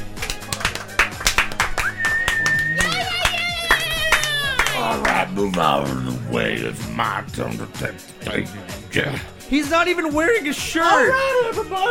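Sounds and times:
audience clapping: 0:00.0 - 0:05.9
whistle-like rising tone: 0:01.8 - 0:03.0
people whooping: 0:01.8 - 0:05.0
speech: 0:05.4 - 0:11.8.

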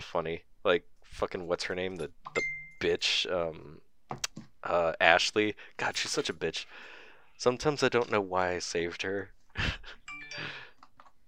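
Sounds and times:
speech: 0:00.1 - 0:10.6
phone message notification ding: 0:02.4 - 0:02.9, 0:10.1 - 0:10.6.

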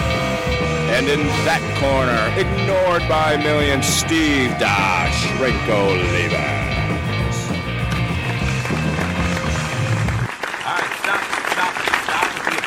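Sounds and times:
low rumbling music or crowd noise: 0:00.0 - 0:10.3
speech: 0:01.0 - 0:07.0
audience applause: 0:07.6 - 0:12.6.

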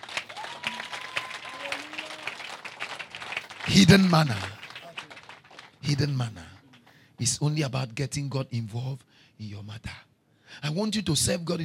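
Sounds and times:
audience applause: 0:00.0 - 0:05.8
speech: 0:03.7 - 0:04.6, 0:05.9 - 0:06.5, 0:07.2 - 0:11.6.

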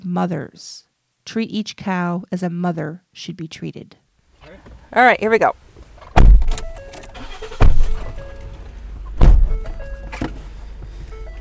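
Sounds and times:
speech: 0:00.0 - 0:05.6
people getting into a Ford car: 0:04.4 - 0:11.3.

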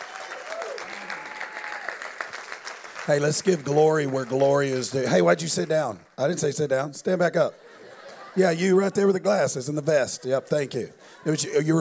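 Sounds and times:
audience clapping: 0:00.0 - 0:06.8
speech: 0:03.1 - 0:07.7, 0:08.4 - 0:11.7
laughter: 0:07.3 - 0:09.8.

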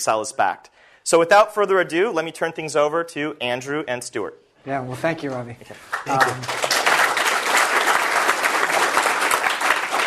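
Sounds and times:
speech: 0:00.0 - 0:06.6
crowd clapping: 0:05.7 - 0:10.0.

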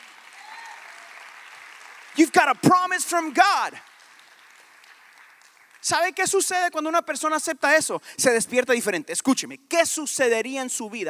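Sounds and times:
people clapping: 0:00.0 - 0:06.6
speech: 0:02.2 - 0:03.9, 0:05.9 - 0:11.0.

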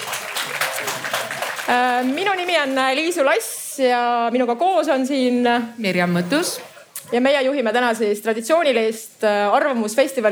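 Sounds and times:
audience applause: 0:00.0 - 0:03.5
speech: 0:01.7 - 0:10.3.

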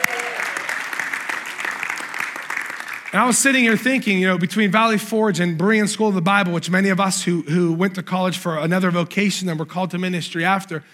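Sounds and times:
church congregation applause: 0:00.0 - 0:04.0
speech: 0:03.1 - 0:10.9.

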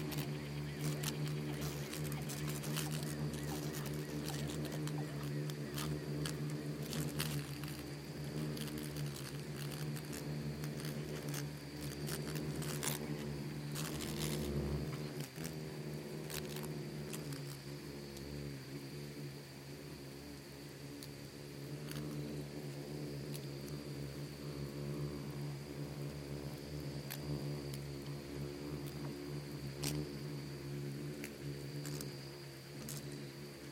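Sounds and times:
crisp ticks and tapping: 0:00.0 - 0:15.6, 0:16.2 - 0:18.2, 0:21.8 - 0:22.3, 0:26.5 - 0:30.3, 0:31.0 - 0:33.7
insect swarm buzzing: 0:00.0 - 0:33.7.

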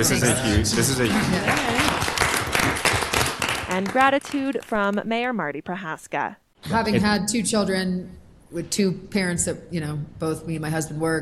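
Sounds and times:
speech: 0:00.0 - 0:02.0, 0:03.8 - 0:11.1
council members applauding: 0:00.0 - 0:05.1.

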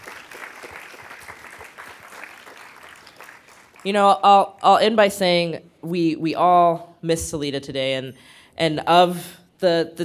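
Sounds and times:
crowd applauding: 0:00.0 - 0:03.9
speech: 0:03.8 - 0:10.0.

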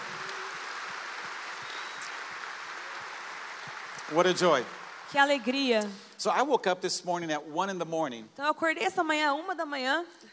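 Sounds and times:
audience applause: 0:00.0 - 0:05.6
speech: 0:04.1 - 0:10.3.

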